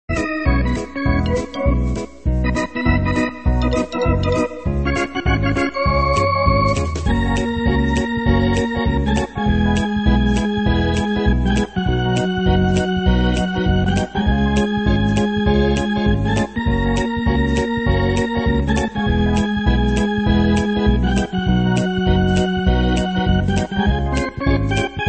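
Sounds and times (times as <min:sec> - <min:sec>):
organ quickstep: 0:00.1 - 0:25.0.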